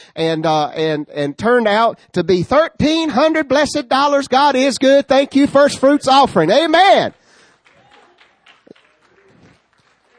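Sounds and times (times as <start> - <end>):
speech: 0.2 - 7.2
audience clapping: 7.1 - 10.1.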